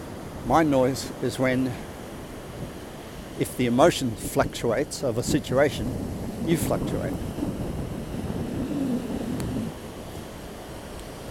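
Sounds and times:
surf washing on a beach: 0.0s - 11.2s
speech: 0.4s - 1.9s, 3.4s - 7.4s
heavy rain on a beach: 5.9s - 10.6s.

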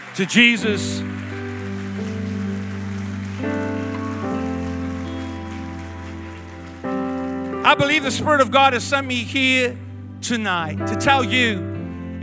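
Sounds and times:
audience clapping: 0.0s - 9.4s
sustained keyboard or organ chords: 0.0s - 12.2s
speech: 0.2s - 1.2s, 7.7s - 12.2s.

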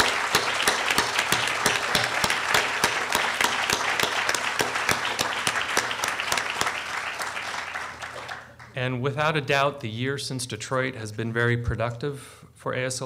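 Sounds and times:
audience applause: 0.0s - 8.8s
speech: 8.8s - 13.0s.

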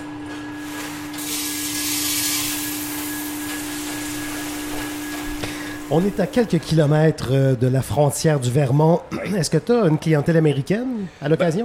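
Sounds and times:
whistling hiss of a cold chimney: 1.2s - 3.8s
speech: 5.9s - 11.6s.

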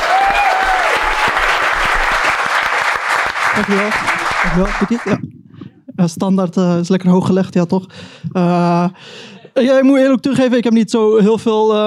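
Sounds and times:
audience applause: 0.0s - 5.2s
speech: 3.6s - 5.3s, 6.0s - 11.8s.

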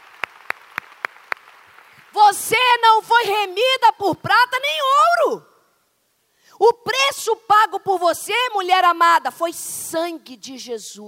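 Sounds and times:
audience applause: 0.0s - 2.1s
speech: 2.2s - 5.5s, 6.6s - 11.0s.

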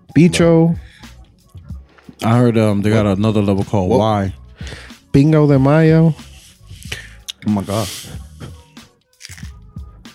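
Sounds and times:
speech: 0.2s - 0.8s, 2.2s - 6.3s, 6.9s - 8.2s
wet chewing: 9.1s - 9.5s
biting into a hard taco shell: 9.1s - 9.6s.

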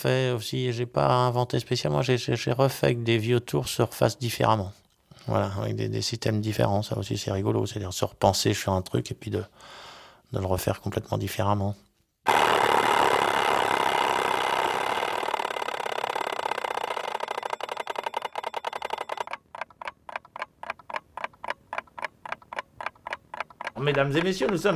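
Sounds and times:
speech: 0.0s - 12.4s, 23.9s - 24.7s
mechanical alarm clock: 12.3s - 21.0s.

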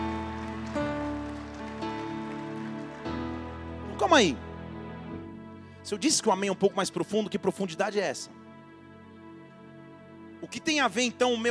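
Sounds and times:
audience applauding: 0.0s - 4.4s
speech: 4.0s - 4.5s, 5.9s - 8.4s, 10.4s - 11.5s.

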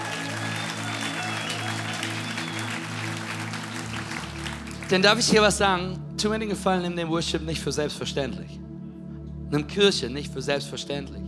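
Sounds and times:
audience applause: 0.0s - 5.4s
speech: 4.9s - 8.6s, 9.5s - 11.2s.

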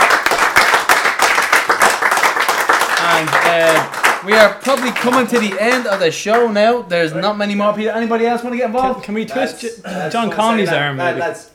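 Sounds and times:
round of applause: 0.0s - 6.4s
speech: 3.5s - 11.5s.

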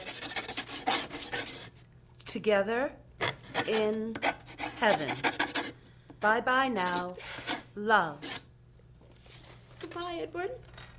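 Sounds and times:
pen or pencil scratching on paper: 0.0s - 1.7s, 3.5s - 5.7s
speech: 2.3s - 3.0s, 3.6s - 5.5s, 6.2s - 8.3s, 10.0s - 10.7s.

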